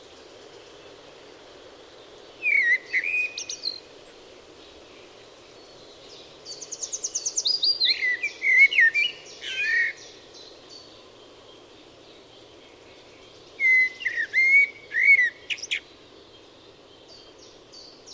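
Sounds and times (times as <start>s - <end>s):
Eurasian blackbird song: 2.4s - 3.9s, 6.1s - 10.2s, 13.2s - 15.9s.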